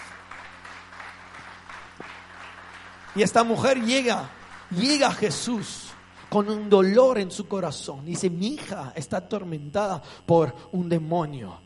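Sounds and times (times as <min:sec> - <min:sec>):
audience applauding: 0:00.0 - 0:07.3
low hum: 0:00.0 - 0:11.6
speech: 0:03.2 - 0:11.6.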